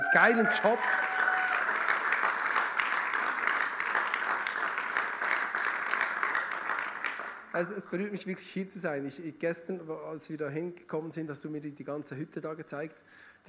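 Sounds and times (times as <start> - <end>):
crowd applauding: 0.0 - 7.5
speech: 0.1 - 1.1, 7.6 - 13.4.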